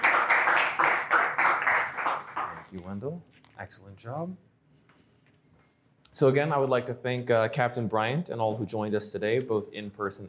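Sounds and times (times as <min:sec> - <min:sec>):
crowd applauding: 0:00.0 - 0:02.7
speech: 0:02.7 - 0:04.5, 0:06.2 - 0:10.2.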